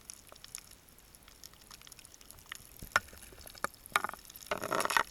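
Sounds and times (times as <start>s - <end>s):
ice melting recorded with piezo microphones frozen into ice: 2.6s - 5.0s.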